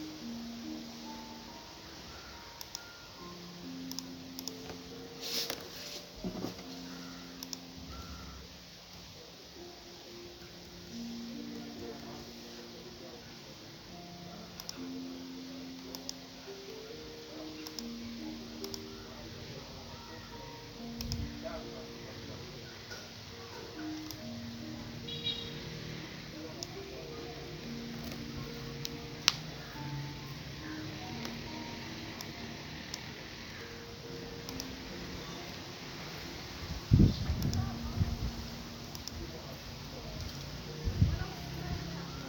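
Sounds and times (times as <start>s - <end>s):
soft melody of short evenly spaced notes: 0.0s - 42.2s
murmur of voices in a restaurant: 10.9s - 42.2s.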